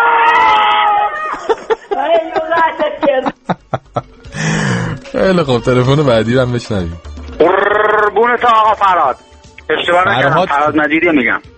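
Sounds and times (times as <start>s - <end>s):
crowd of people roaring together: 0.0s - 1.7s
laughter: 1.0s - 5.0s
speech: 5.2s - 11.5s.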